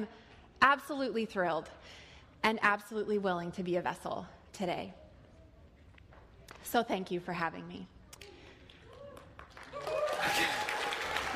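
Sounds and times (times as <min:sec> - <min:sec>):
speech: 0:00.0 - 0:05.0, 0:06.6 - 0:08.0
audience applause: 0:08.9 - 0:11.3.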